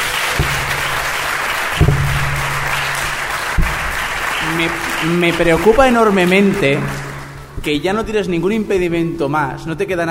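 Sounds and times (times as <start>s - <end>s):
applause: 0.0s - 7.5s
speech: 4.6s - 7.0s, 7.6s - 10.0s.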